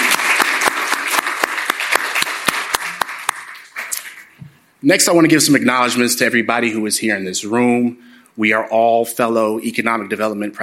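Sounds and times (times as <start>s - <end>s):
audience applause: 0.0s - 4.3s
speech: 4.8s - 10.6s.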